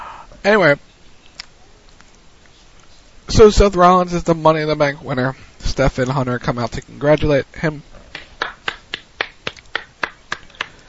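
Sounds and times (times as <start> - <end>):
speech: 0.4 - 0.9, 3.4 - 7.9
hand claps: 8.1 - 10.8.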